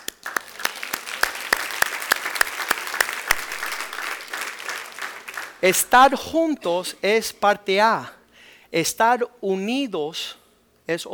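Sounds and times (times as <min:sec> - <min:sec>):
audience applause: 0:00.0 - 0:06.5
speech: 0:05.6 - 0:11.1.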